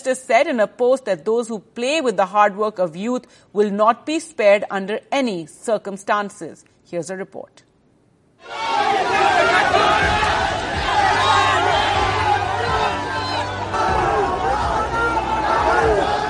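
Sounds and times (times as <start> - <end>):
speech: 0.0 - 7.7
crowd of Uttar Pradesh police constable exam aspirants cheering: 8.4 - 16.2.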